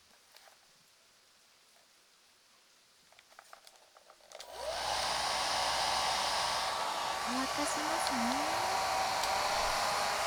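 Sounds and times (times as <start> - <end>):
hair dryer blowing after a bath: 4.4 - 10.2.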